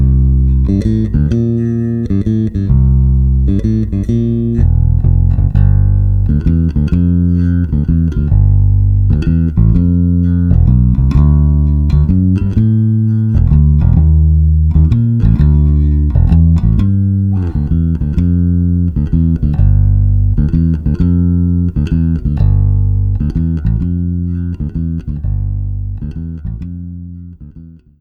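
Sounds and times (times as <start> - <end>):
blues bass line: 0.0 - 27.9.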